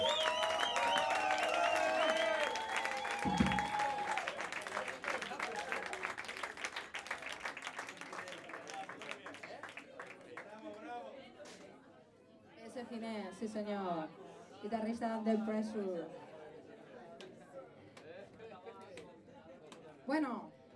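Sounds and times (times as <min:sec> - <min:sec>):
people whooping: 0:00.0 - 0:06.1
audience applauding: 0:00.0 - 0:10.8
speech: 0:13.5 - 0:16.2.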